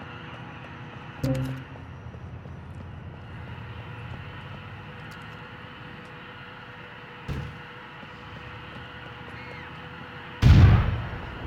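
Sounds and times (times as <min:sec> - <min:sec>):
grenade explosion in the video game GTA IV: 0:10.4 - 0:11.4.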